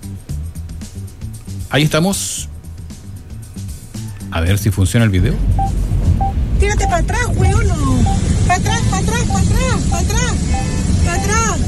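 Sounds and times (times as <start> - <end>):
speech: 1.7 - 2.5, 4.4 - 6.0, 6.7 - 11.6
vehicle horns honking during avalanche: 8.1 - 11.6.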